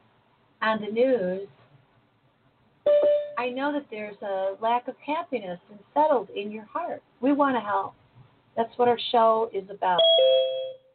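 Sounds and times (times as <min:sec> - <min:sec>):
speech: 0:00.6 - 0:01.6, 0:02.9 - 0:08.0, 0:08.6 - 0:10.6
ding-dong chime: 0:10.0 - 0:10.9.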